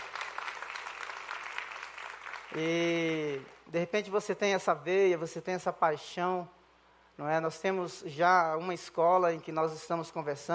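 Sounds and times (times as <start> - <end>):
audience applause: 0.0 - 3.5
speech: 2.5 - 6.6, 7.2 - 10.5.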